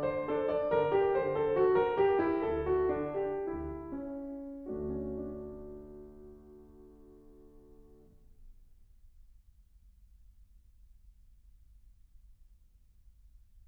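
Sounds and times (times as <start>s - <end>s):
prelude in D minor: 0.0s - 8.2s.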